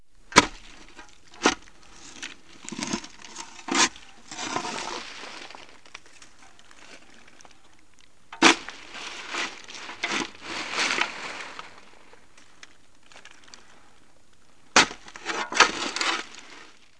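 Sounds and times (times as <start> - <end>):
shovel: 0.3 - 5.8, 8.4 - 11.9, 14.8 - 16.8.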